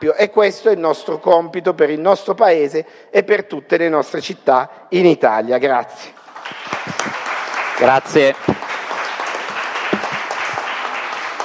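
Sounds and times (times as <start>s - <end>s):
speech: 0.0s - 6.8s, 7.8s - 8.6s
audience applause: 6.2s - 11.4s.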